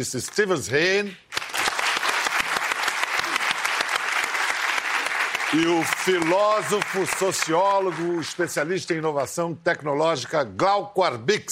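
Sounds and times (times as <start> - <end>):
speech: 0.0 - 1.3, 5.5 - 11.5
audience applause: 1.3 - 8.6.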